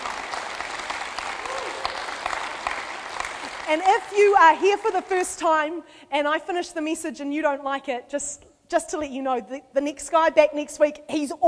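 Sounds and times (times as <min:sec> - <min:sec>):
crowd clapping: 0:00.0 - 0:05.4
speech: 0:03.7 - 0:11.4.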